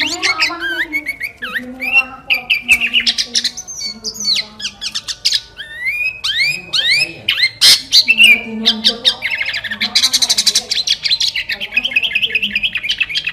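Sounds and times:
sooty-headed bulbul chattering: 0.0 - 13.3.

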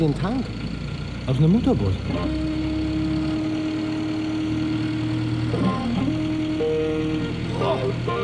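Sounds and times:
speech: 0.0 - 0.7, 1.3 - 2.6
aluminium Subaru engine in a homebuilt aircraft revving to 5500 rpm: 1.8 - 8.2.

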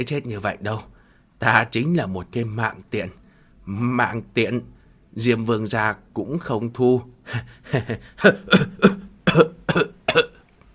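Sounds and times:
speech: 0.0 - 9.5
person coughing up blood: 7.3 - 10.4.

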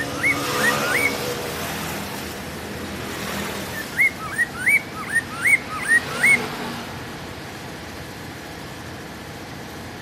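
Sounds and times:
bird song of upward-sweeping whistles: 0.0 - 1.4, 3.7 - 6.5.

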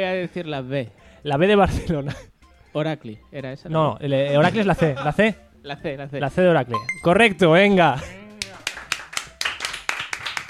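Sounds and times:
speech: 0.0 - 8.2
small quiz-show audience clapping: 8.4 - 10.4.

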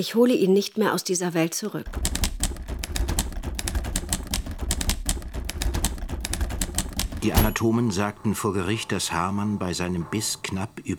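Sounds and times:
speech: 0.0 - 2.2, 7.2 - 10.9
typewriter typing in a study: 1.9 - 7.7.

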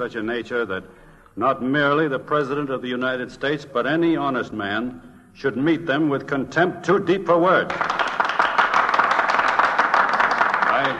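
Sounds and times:
speech: 0.0 - 8.0
sustained applause from a crowd of senators: 7.7 - 10.9.

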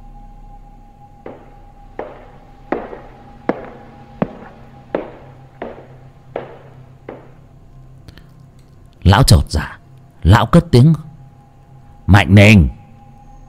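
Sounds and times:
footsteps echoing in a wooden house: 1.3 - 7.4
speech: 9.1 - 11.1, 12.1 - 12.8.

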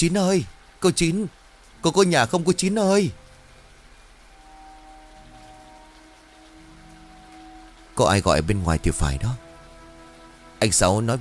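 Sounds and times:
speech: 0.0 - 3.2, 8.0 - 9.4, 10.6 - 11.1
heavy rain shower: 0.0 - 11.1.

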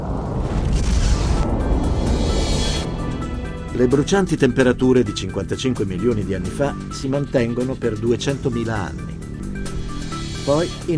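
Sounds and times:
methane gas explosion boom: 0.0 - 3.6
speech: 3.8 - 9.2, 10.4 - 10.9.

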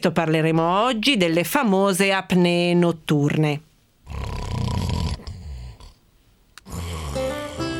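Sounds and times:
speech: 0.0 - 4.4
person snoring: 4.0 - 6.0, 6.6 - 7.7.

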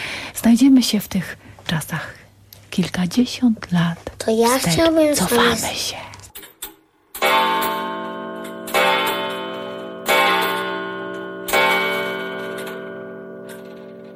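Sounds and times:
speech: 0.4 - 2.2, 2.8 - 6.1
clock striking in the Milusin manor house in Sulejówek: 7.2 - 14.1.

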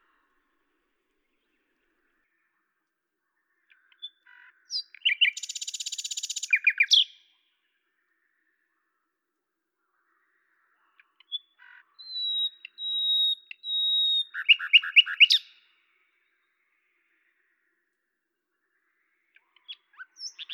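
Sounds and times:
common nightingale singing at Lavours in France: 3.4 - 8.6, 10.0 - 17.7, 18.6 - 20.5.

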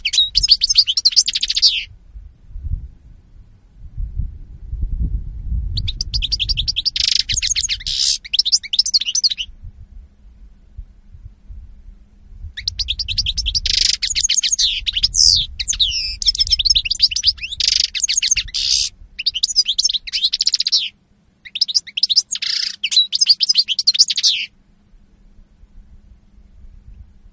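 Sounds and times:
European goldfinch twittering song: 0.0 - 1.9, 5.8 - 9.5, 12.6 - 24.5
low rumbling background noise: 0.0 - 8.3, 9.4 - 20.1, 24.5 - 27.3.

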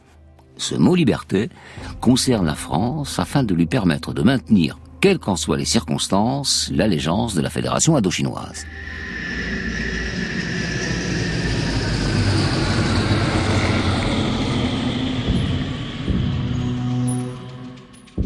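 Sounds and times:
speech: 0.6 - 9.1
Air France Constellation airliner propeller engines droning in flight from Orly to Saigon: 8.4 - 18.2.

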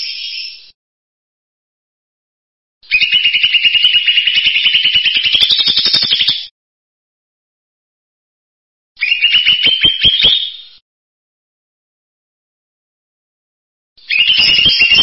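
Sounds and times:
bird song: 0.0 - 0.8, 2.8 - 6.5, 9.0 - 10.8, 14.0 - 15.0.

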